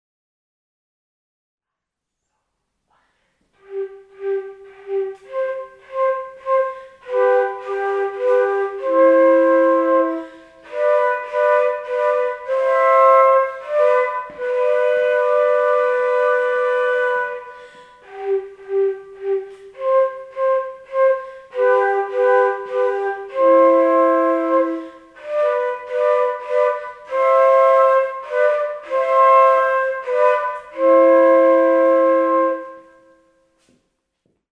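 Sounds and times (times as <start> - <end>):
saxophone: 3.6 - 33.3
transverse flutes: 3.6 - 33.6.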